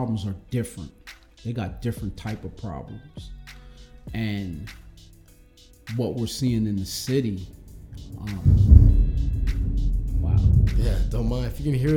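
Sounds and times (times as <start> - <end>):
speech: 0.0 - 3.4, 4.1 - 4.8, 5.9 - 8.7, 10.3 - 11.9
faint hiss: 3.5 - 11.9
thunder rumbling: 7.8 - 11.9.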